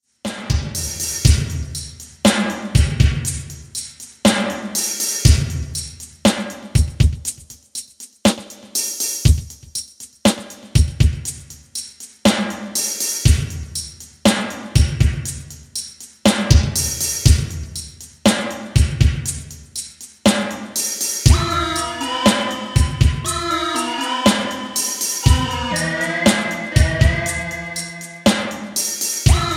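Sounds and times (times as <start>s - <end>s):
drums through Roland SRV-2000: 0.0s - 29.5s
synths through Roland SRV-2000: 21.3s - 28.6s.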